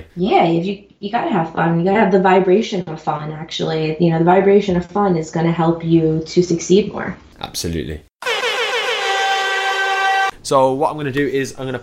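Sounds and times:
speech: 0.0 - 8.1, 10.5 - 11.8
buzzer going off: 8.2 - 10.3.

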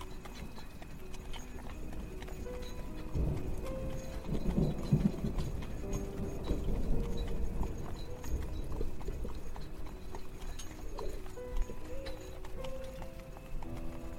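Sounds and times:
carriage creaks: 0.0 - 14.1
carriage horse hooves clip-clopping: 0.0 - 14.1
horse-drawn carriage wheels rumbling: 0.0 - 14.1.

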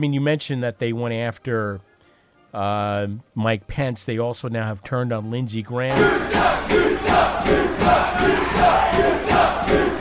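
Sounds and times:
speech: 0.0 - 1.9, 2.5 - 9.8
crowd heckling and yelling: 5.9 - 9.9.

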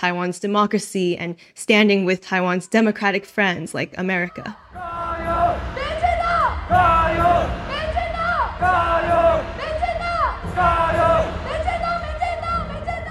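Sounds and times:
speech: 0.0 - 5.3
large crowd chanting a short phrase in unison: 4.6 - 13.1.

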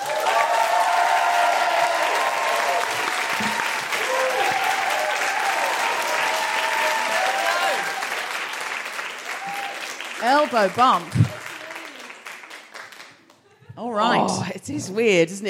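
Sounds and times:
audience woohooing: 0.0 - 8.0
audience applauding a musical guest: 0.0 - 13.7
speech: 10.4 - 11.3, 13.9 - 15.4.

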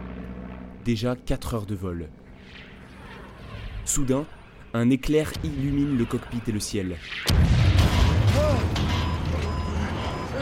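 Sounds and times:
speech: 0.8 - 2.7, 3.9 - 7.6
surface-to-air missile explosion: 7.2 - 10.2.

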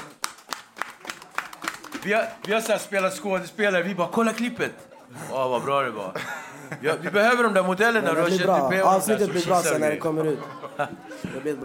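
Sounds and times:
people clapping hands: 0.0 - 4.7
speech: 2.0 - 11.6
laughter: 4.6 - 11.6.

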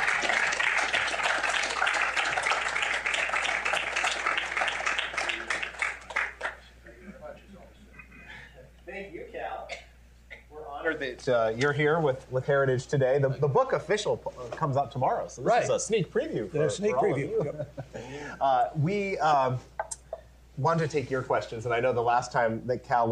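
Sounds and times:
audience applause: 0.0 - 6.7
speech: 11.0 - 19.7, 20.6 - 23.1
laughter: 16.8 - 18.4.

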